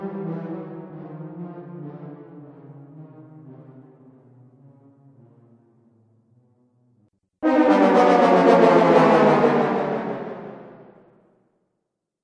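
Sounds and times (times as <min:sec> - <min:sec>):
cartoon failure brass with delay: 0:07.4 - 0:11.0.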